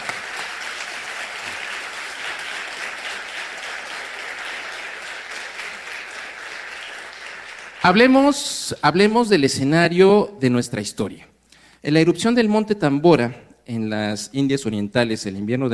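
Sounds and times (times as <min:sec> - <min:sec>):
audience applause: 0:00.0 - 0:08.2
speech: 0:07.8 - 0:15.7.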